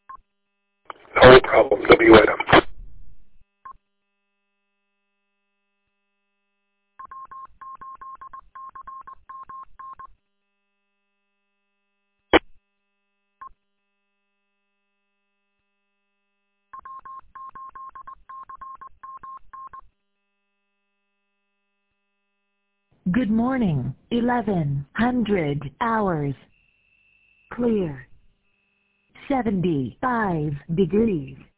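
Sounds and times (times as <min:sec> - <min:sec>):
speech: 0:01.2 - 0:02.5, 0:23.3 - 0:26.5, 0:27.6 - 0:28.1, 0:29.3 - 0:31.5
telephone touch-tone dialing: 0:07.0 - 0:10.1, 0:16.8 - 0:19.8.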